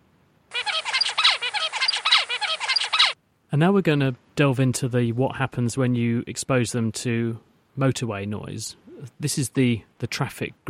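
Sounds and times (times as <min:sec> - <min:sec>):
juvenile songbird singing: 0:00.5 - 0:03.2
speech: 0:03.5 - 0:10.6.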